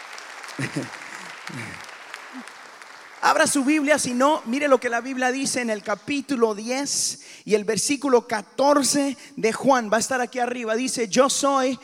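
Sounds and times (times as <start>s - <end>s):
audience applause: 0.0s - 5.4s
laughter: 0.6s - 1.8s
speech: 0.6s - 2.6s, 3.2s - 11.8s.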